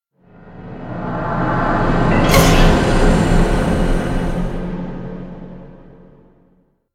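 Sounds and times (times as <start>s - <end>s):
swelling stinger: 0.3s - 6.1s.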